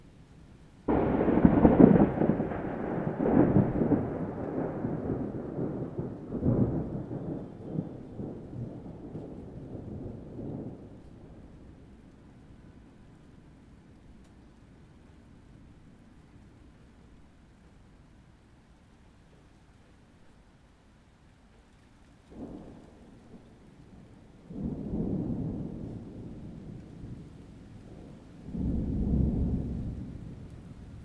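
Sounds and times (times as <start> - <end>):
rain: 0.0 - 31.0
thunder: 0.9 - 11.9, 22.3 - 31.0.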